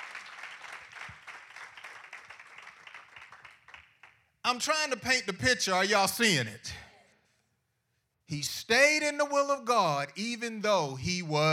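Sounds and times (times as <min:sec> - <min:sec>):
crowd clapping: 0:00.0 - 0:04.4
speech: 0:04.4 - 0:06.8, 0:08.3 - 0:11.5.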